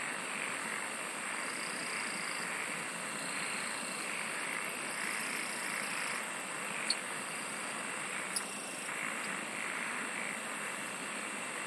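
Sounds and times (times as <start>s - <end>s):
background hiss: 0.0s - 11.6s
insect ticking pulses: 0.3s - 10.9s.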